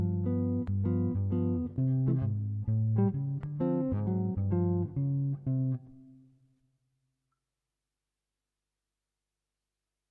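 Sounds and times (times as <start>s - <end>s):
jazz guitar improvisation backing: 0.0s - 6.3s.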